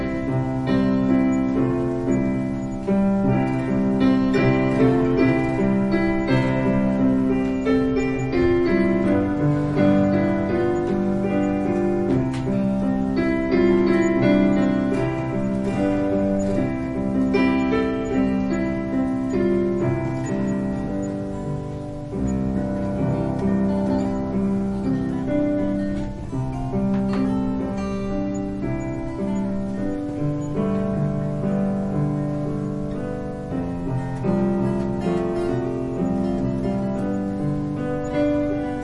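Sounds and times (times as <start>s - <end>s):
guitar: 0.0s - 38.8s
piano: 0.0s - 38.8s.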